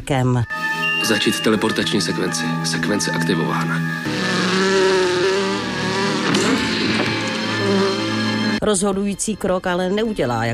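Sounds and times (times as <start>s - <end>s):
speech: 0.1s - 4.2s, 8.6s - 10.5s
housefly buzzing: 4.0s - 8.6s.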